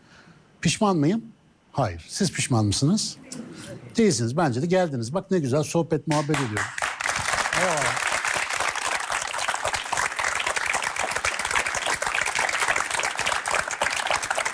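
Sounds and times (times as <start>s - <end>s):
speech: 0.6s - 6.8s
audience applause: 6.1s - 14.5s.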